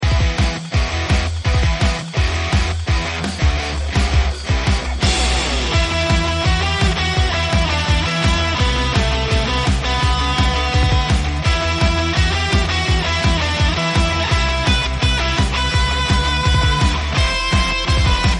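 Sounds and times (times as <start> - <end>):
music: 0.0 - 18.3.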